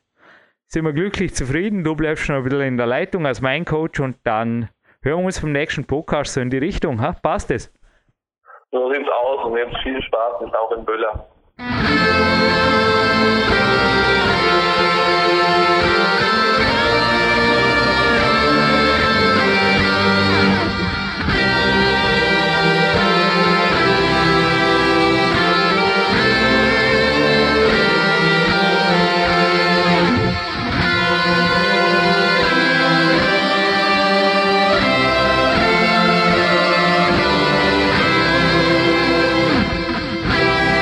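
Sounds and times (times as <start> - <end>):
speech: 0.7 - 7.8, 8.7 - 13.4
national anthem instrumental music: 11.6 - 40.7.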